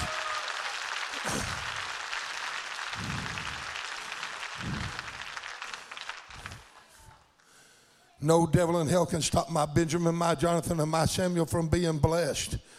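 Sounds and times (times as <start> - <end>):
audience hand clap applause: 0.0 - 7.4
speech: 8.2 - 12.7.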